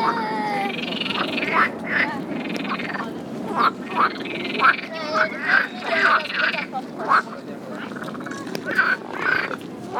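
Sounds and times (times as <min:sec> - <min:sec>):
frog croaking: 0:00.7 - 0:09.9.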